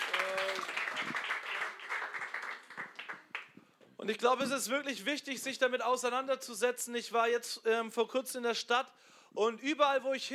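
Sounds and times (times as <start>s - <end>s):
audience applauding: 0.0s - 3.6s
speech: 4.0s - 10.3s.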